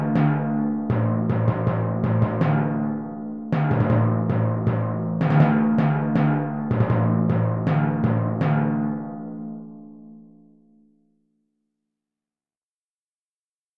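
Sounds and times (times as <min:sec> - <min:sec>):
timpani etude: 0:00.0 - 0:09.6.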